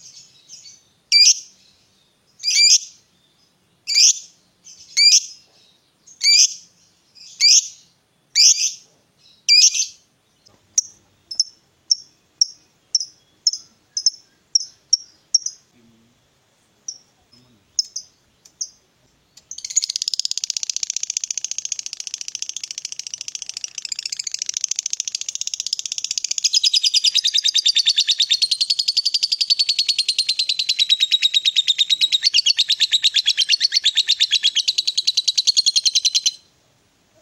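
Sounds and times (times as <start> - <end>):
lovebird chirping and chattering: 0.0 - 36.5.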